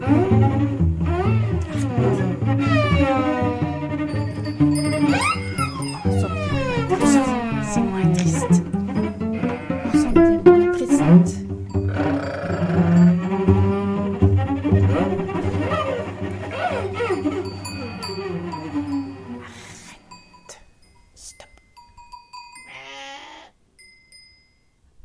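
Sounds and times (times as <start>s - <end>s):
jingle: 0.1s - 22.8s, 23.7s - 24.9s.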